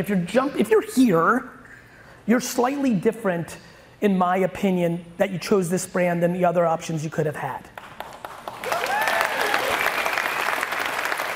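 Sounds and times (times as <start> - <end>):
speech: 0.0 - 1.6, 2.3 - 7.7
crowd applause: 8.0 - 11.3.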